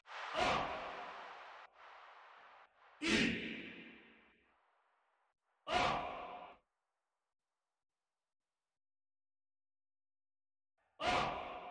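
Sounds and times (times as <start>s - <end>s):
people shouting: 0.3s - 1.3s, 5.7s - 6.5s, 11.0s - 11.6s.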